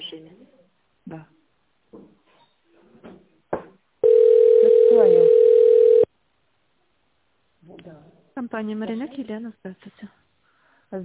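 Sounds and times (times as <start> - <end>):
speech: 1.1 - 1.3, 8.6 - 10.2
telephone line tone while waiting for operator: 4.0 - 6.1.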